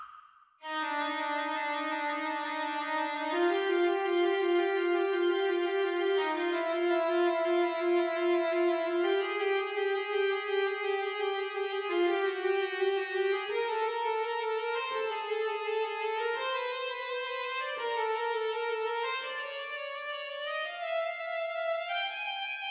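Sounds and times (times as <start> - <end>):
backing track: 0.6 - 22.6.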